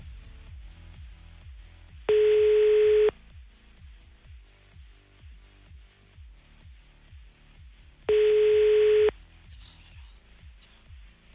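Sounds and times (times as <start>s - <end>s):
outgoing phone call ringing tone: 2.1s - 3.1s, 8.1s - 9.1s.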